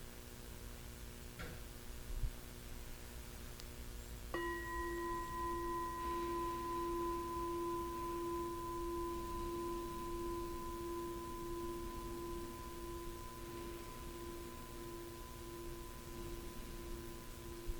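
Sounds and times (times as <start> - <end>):
low hum: 0.0 - 17.7
meditation bell ringing: 4.3 - 17.7.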